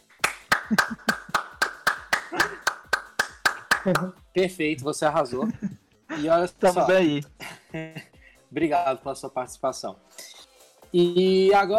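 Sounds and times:
hand clapping: 0.0s - 4.2s
laughter: 0.6s - 1.5s, 2.2s - 2.8s, 3.7s - 4.1s, 5.3s - 6.3s
speech: 0.7s - 1.1s, 3.8s - 10.1s, 10.9s - 11.7s.

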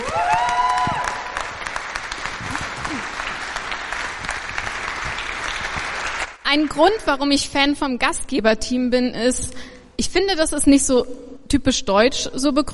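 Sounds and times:
audience applause: 0.0s - 6.4s
speech: 6.5s - 12.7s.

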